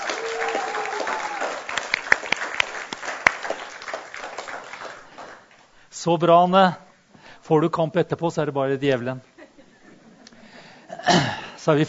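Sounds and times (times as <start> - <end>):
audience applause: 0.0 - 5.7
speech: 6.0 - 6.8, 7.5 - 9.3, 11.6 - 11.8.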